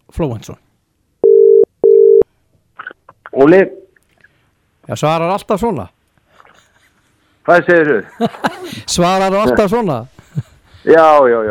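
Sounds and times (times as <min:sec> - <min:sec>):
speech: 0:00.2 - 0:00.7, 0:03.4 - 0:03.8, 0:04.9 - 0:06.0, 0:07.4 - 0:11.4
telephone ringing tone: 0:01.2 - 0:02.2
laughter: 0:08.0 - 0:10.8.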